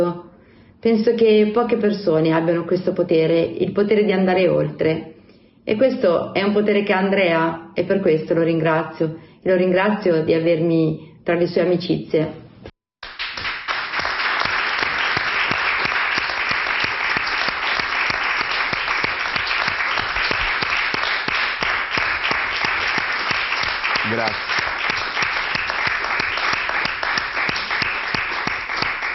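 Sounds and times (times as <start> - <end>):
speech: 0.0 - 12.4
audience applause: 13.0 - 29.1.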